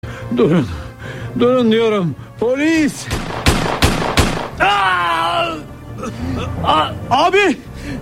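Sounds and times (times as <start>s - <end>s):
speech: 0.3s - 3.3s, 6.0s - 8.0s
gunshots during a police confrontation: 3.1s - 4.7s
man shouting cry: 4.6s - 5.7s.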